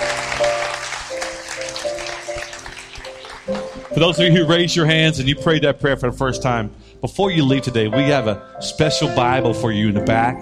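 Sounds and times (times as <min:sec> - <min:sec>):
church congregation applause welcoming new believers: 0:00.0 - 0:04.7
speech: 0:04.0 - 0:10.4.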